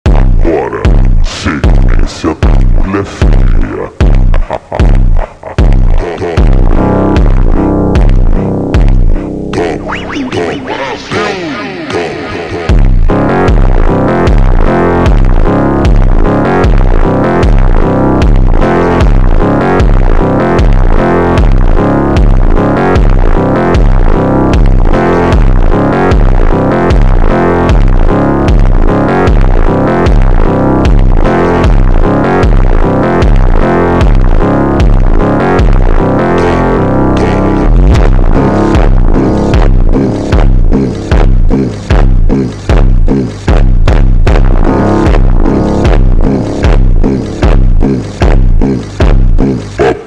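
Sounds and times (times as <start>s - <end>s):
slowed phonk music: 0.0s - 50.0s.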